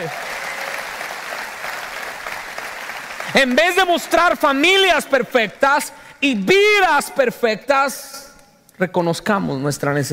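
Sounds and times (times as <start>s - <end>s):
speech: 0.0s - 0.3s, 3.3s - 8.2s, 8.8s - 10.1s
audience applause: 0.0s - 4.5s.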